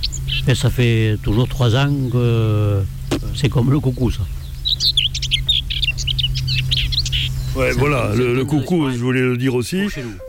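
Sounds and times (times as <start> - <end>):
steady low hum: 0.0 - 9.0
common whitethroat singing: 0.0 - 10.2
speech: 0.2 - 5.0, 7.6 - 10.2.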